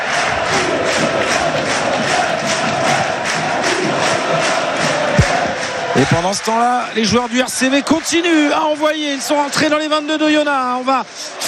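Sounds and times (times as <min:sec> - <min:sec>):
rugby crowd cheering and chanting at La Rabine stadium in Vannes: 0:00.0 - 0:11.4
thump: 0:05.2 - 0:05.5
speech: 0:06.0 - 0:11.4.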